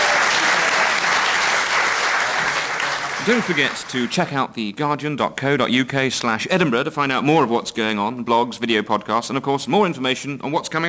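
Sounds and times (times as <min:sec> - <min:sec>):
audience applause: 0:00.0 - 0:04.2
speech: 0:03.2 - 0:10.8.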